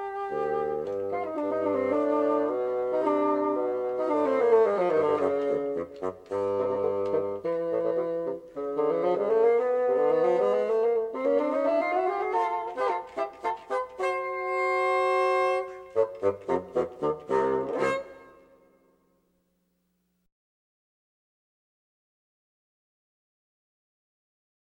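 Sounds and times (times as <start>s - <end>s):
bassoons playing: 0.0s - 18.9s.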